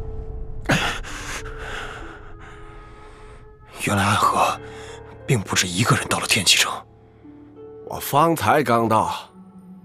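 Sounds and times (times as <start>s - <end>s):
labored gasping breath: 0.7s - 3.7s
speech: 3.8s - 4.4s, 5.3s - 6.9s, 7.9s - 9.3s.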